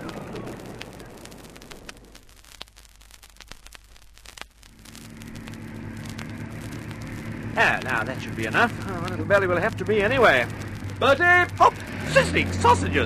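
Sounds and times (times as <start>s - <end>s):
aircraft engine starting up: 5.2s - 13.0s
speech: 7.6s - 13.0s.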